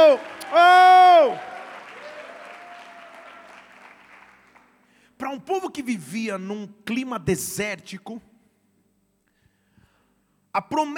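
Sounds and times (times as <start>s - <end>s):
large group clapping: 0.0s - 4.9s
speech: 0.1s - 1.5s, 5.2s - 8.3s, 10.6s - 10.9s.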